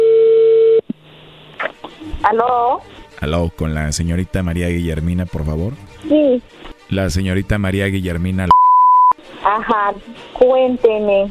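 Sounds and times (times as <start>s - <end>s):
telephone line tone as call connects: 0.0s - 0.8s
speech: 2.2s - 8.6s, 9.4s - 11.2s
blips: 8.5s - 9.2s.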